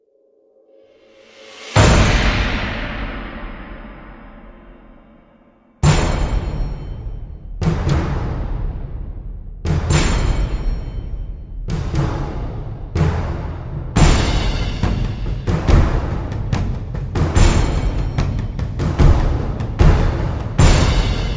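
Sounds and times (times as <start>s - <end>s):
drums: 1.0s - 21.3s.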